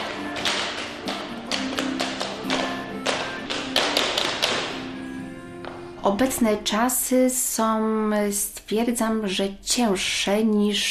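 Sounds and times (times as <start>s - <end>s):
feet tapping at an Irish step dance rehearsal: 0.0s - 6.5s
speech: 6.0s - 10.9s.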